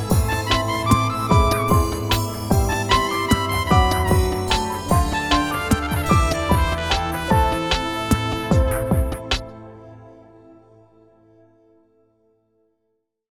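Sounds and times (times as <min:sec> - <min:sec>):
melodic rhythm music: 0:00.0 - 0:09.6.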